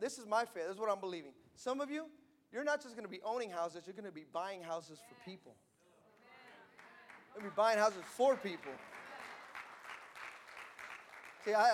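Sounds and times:
speech: 0.0 - 5.7, 7.4 - 9.0, 11.4 - 11.7
audience clapping: 6.2 - 11.7.

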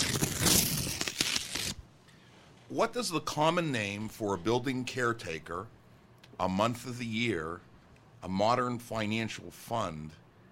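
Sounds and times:
paper envelope crinkling and tearing open: 0.0 - 1.8
speech: 2.7 - 5.8, 6.4 - 10.2.

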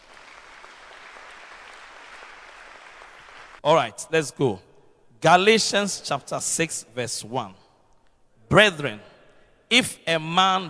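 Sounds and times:
audience clapping: 0.0 - 3.6
speech: 3.6 - 7.6, 8.5 - 9.1, 9.7 - 10.6.

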